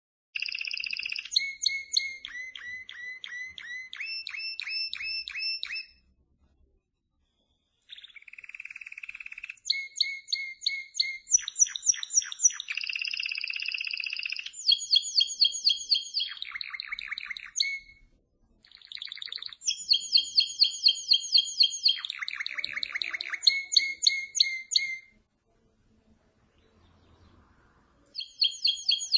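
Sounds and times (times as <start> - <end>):
canary song with rolling trills and warbled phrases: 0.4 - 6.0, 7.9 - 18.0, 18.6 - 25.2.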